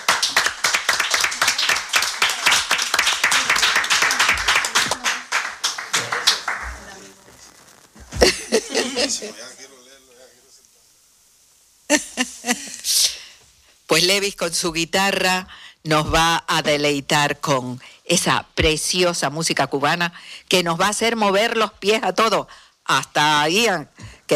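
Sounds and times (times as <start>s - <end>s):
audience applause: 0.0s - 7.4s
laughter: 8.1s - 9.7s
speech: 9.2s - 9.7s, 14.2s - 24.3s.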